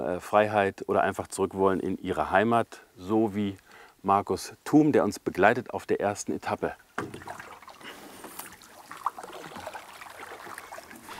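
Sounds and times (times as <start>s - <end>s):
speech: 0.1s - 7.4s
flowing stream water trickling and lapping around a gliding boat: 6.6s - 11.1s
sharp splash or knock: 7.0s - 11.0s.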